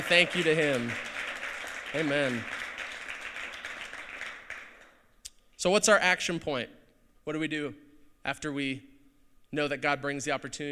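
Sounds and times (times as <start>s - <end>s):
church congregation clapping in thanks: 0.0s - 5.1s
speech: 0.1s - 1.1s, 1.9s - 2.6s, 5.6s - 8.9s, 9.5s - 10.7s.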